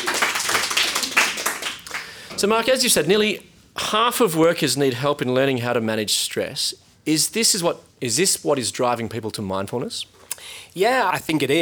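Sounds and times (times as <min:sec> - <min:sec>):
round of applause: 0:00.0 - 0:02.4
speech: 0:02.4 - 0:11.5.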